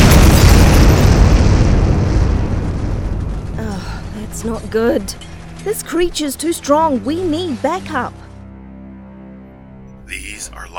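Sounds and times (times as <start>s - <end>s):
Capitol building crumbling: 0.0s - 8.3s
speech: 4.4s - 8.2s.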